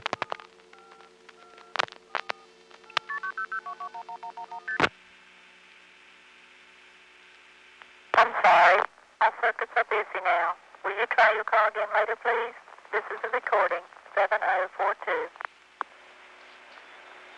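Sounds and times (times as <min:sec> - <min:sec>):
touch-tone dialing of a 900 area code number: 0:00.1 - 0:04.8
person speaking: 0:08.2 - 0:15.3.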